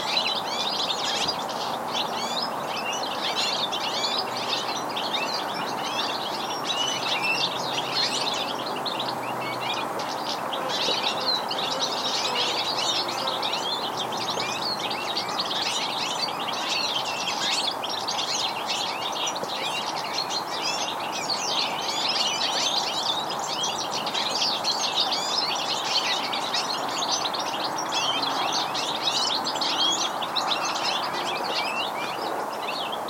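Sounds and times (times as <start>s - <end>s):
European goldfinch singing: 0.0s - 33.0s.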